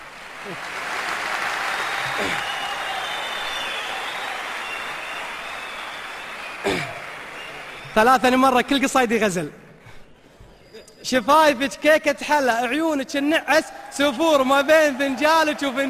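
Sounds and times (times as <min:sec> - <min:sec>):
audience applause during Arabic love poetry performance: 0:00.0 - 0:08.6, 0:14.0 - 0:15.8
speech: 0:00.4 - 0:00.8, 0:02.1 - 0:02.5, 0:08.0 - 0:09.6, 0:11.0 - 0:15.8.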